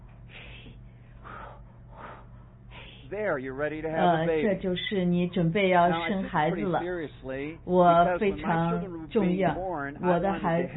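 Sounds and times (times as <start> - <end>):
steady low hum: 0.0 - 10.7
group breathing in a childbirth preparation class: 0.3 - 3.2
speech: 3.1 - 10.7.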